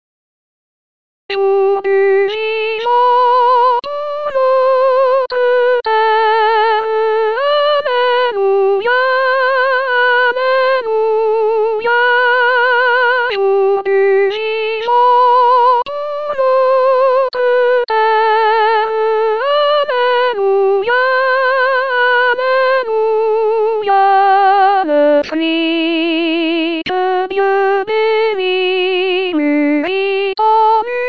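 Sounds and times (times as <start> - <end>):
soprano singing: 1.3 - 31.0.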